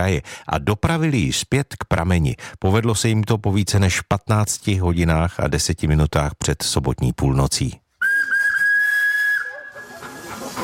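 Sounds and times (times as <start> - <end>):
speech: 0.0 - 7.8
old steam fire pump whistling: 8.0 - 10.6
old steam fire pump hissing steam: 8.3 - 10.6.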